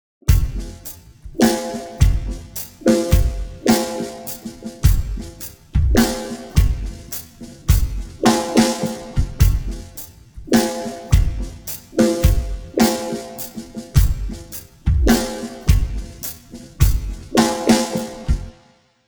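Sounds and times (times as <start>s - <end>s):
drums: 0.2s - 18.6s.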